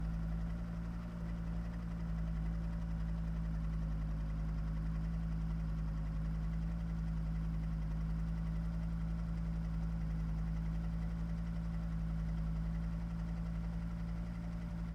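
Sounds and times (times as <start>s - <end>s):
1983 Audi Ur-Quattro engine while driving: 0.0s - 14.9s.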